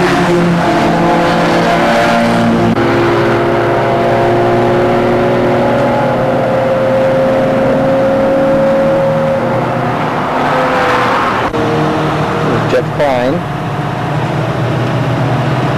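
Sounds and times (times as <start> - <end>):
short wavering tone: 0.0 - 14.2
Datsun 510 engine revving around Portland International Raceway: 0.0 - 15.7.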